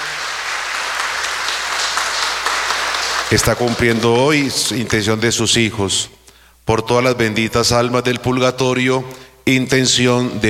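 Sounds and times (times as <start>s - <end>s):
audience applause for a birthday: 0.0s - 4.9s
speech: 3.3s - 10.4s.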